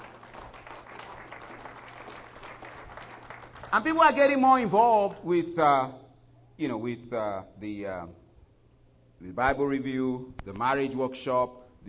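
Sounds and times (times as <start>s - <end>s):
audience clapping: 0.0s - 5.3s
speech: 3.7s - 6.0s, 6.6s - 8.2s, 9.2s - 11.8s.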